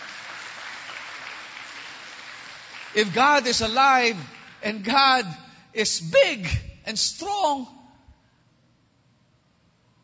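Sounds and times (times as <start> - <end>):
congregation applauding during a church service: 0.0 - 5.6
speech: 3.0 - 7.8.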